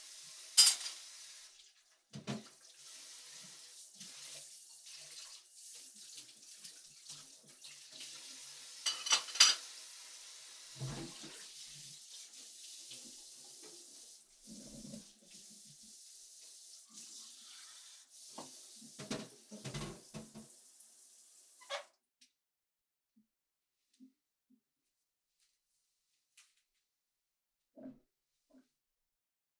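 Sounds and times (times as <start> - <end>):
dishes being washed: 0.0 - 20.6.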